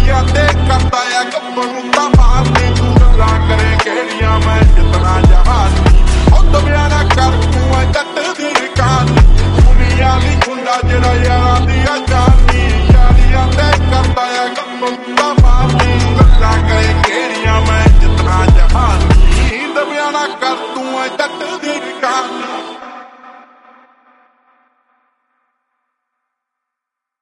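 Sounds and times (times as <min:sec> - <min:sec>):
drill beat: 0:00.0 - 0:19.6.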